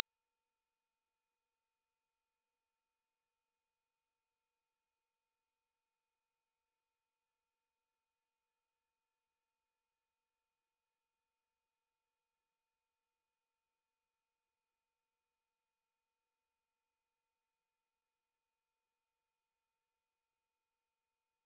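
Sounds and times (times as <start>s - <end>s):
pure 5520 Hz sine tone: 0.0s - 21.4s.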